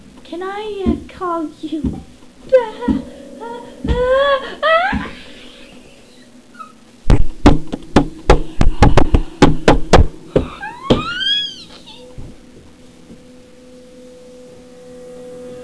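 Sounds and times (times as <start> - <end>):
speech: 0.3 - 4.7
knocking on a door: 7.1 - 11.1.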